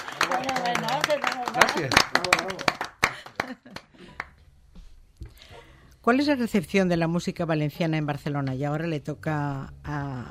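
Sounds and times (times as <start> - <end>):
audience applause: 0.0 - 3.9
speech: 0.3 - 2.8, 6.0 - 10.2.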